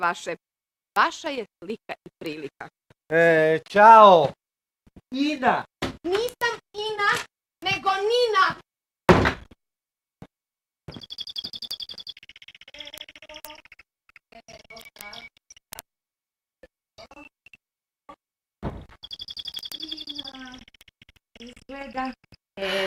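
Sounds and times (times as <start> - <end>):
speech: 0.0 - 4.4, 5.1 - 8.6, 14.4 - 15.4, 17.0 - 17.3, 21.7 - 22.8
door slammed shut by a draft from an open bathroom window: 9.1 - 9.5
chirpy bird calls: 10.9 - 15.8, 19.0 - 22.4.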